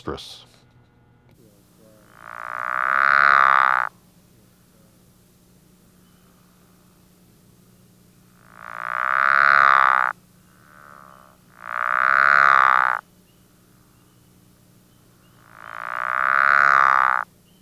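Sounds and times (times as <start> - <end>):
pickerel frog calling with low rasping snores: 1.9 - 4.0, 5.9 - 7.1, 8.3 - 13.1, 15.0 - 17.3.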